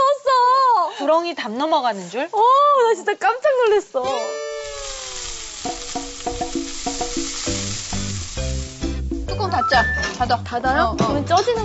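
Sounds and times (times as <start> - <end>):
speech: 1.1 - 4.4, 9.5 - 11.6
steak sizzling in a frying pan: 1.7 - 9.6
stepping melody of tones: 9.3 - 10.4.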